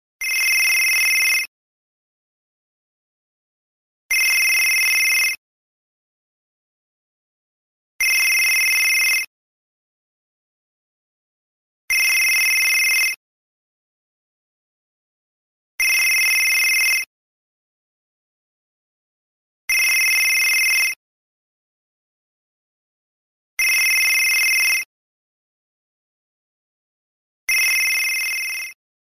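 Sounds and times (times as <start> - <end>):
Nextel phone ringtone: 0.2 - 1.5, 4.1 - 5.4, 8.0 - 9.3, 11.9 - 13.2, 15.8 - 17.1, 19.7 - 21.0, 23.6 - 24.9, 27.5 - 28.8.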